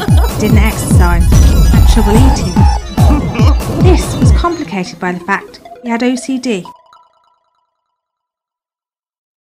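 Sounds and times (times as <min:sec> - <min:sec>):
electronic pop track on Korg Karma workstation: 0:00.0 - 0:07.2.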